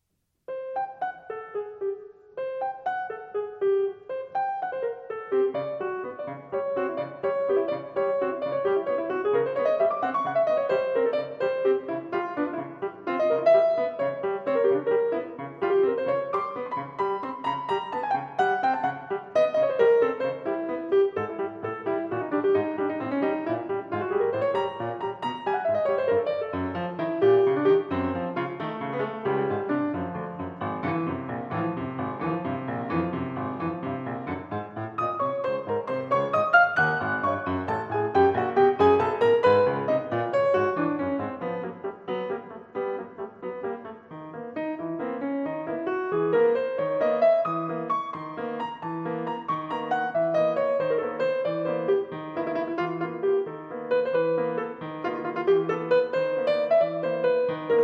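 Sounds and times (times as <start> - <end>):
improvised music: 0.5 - 57.8.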